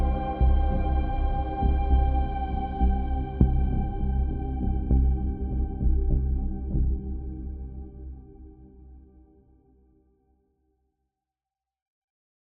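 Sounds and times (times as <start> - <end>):
ambient piano: 0.0 - 9.1.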